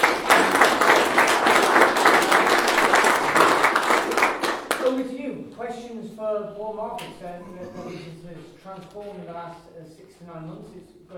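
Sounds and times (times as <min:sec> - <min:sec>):
round of applause: 0:00.0 - 0:05.1
speech: 0:06.4 - 0:11.1.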